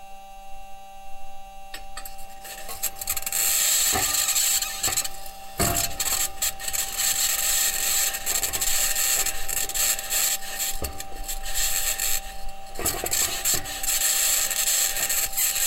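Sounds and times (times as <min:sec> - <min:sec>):
Perseverance rover driving on aluminum wheels across Mars: 0:02.0 - 0:15.6.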